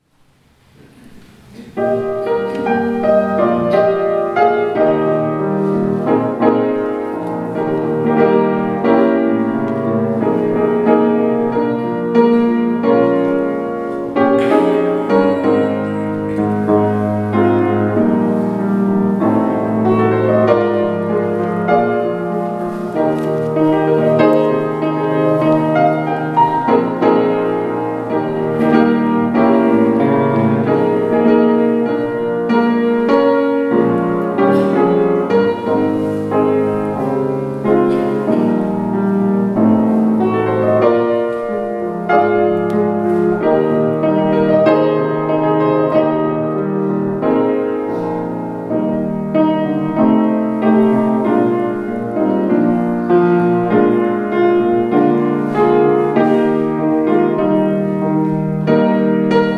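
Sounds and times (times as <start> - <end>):
piano: 0.0 - 59.5.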